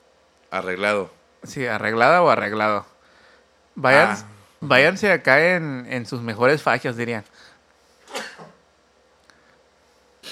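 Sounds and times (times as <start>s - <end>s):
speech: 0.5s - 2.9s, 3.8s - 7.5s
sneeze: 8.1s - 8.6s.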